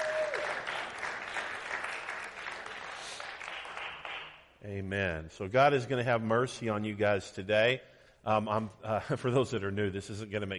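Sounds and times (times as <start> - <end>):
church congregation applauding to welcome newcomers and online viewers: 0.0 - 4.5
speech: 4.6 - 10.5.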